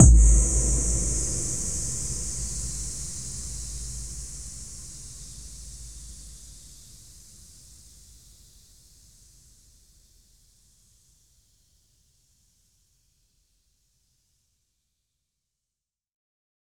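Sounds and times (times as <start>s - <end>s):
boom: 0.0s - 5.9s.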